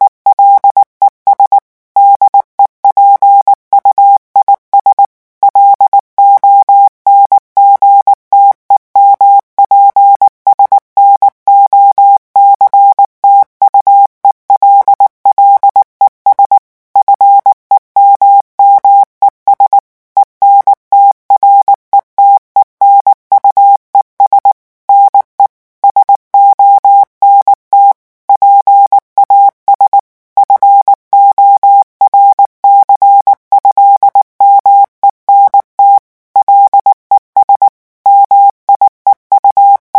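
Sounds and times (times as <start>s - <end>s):
morse code at 18 words per minute: 0.3s - 39.9s.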